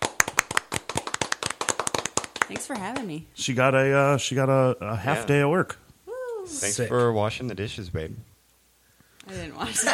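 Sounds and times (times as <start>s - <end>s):
hands clapping in welcome: 0.0s - 3.2s
speech: 2.5s - 5.8s, 6.5s - 8.3s, 9.3s - 9.9s.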